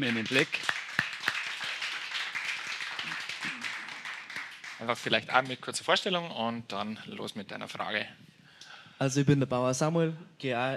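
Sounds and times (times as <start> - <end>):
speech: 0.0 - 0.8, 4.8 - 8.2, 9.0 - 10.7
audience applause: 0.0 - 5.6.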